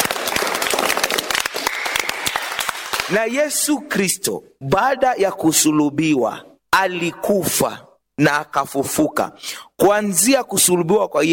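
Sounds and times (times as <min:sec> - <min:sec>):
congregation clapping in a church: 0:00.0 - 0:03.7
speech: 0:03.1 - 0:11.3.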